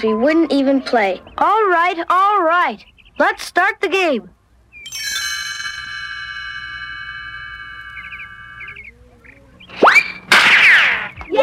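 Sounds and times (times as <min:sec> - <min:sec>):
sustained ringing tonal notes and chirps: 0:00.0 - 0:02.2, 0:04.7 - 0:09.8
speech: 0:00.0 - 0:04.4
baseball bat hitting a ball in a Peanuts cartoon: 0:09.8 - 0:11.3.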